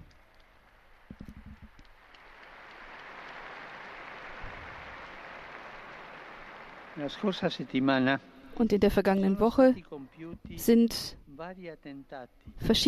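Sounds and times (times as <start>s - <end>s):
crowd applause: 0.0s - 8.0s
speech: 7.0s - 12.8s.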